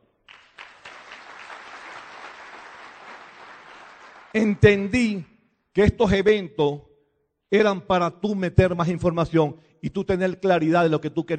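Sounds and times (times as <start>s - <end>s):
loud audience applause: 0.3s - 4.9s
speech: 4.4s - 6.9s, 7.5s - 11.3s.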